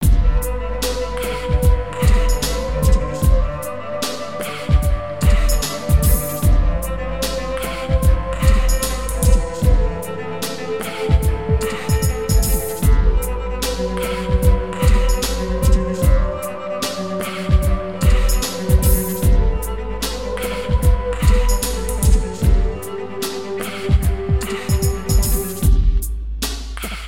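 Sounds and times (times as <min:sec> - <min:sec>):
cello music: 0:00.0 - 0:26.4.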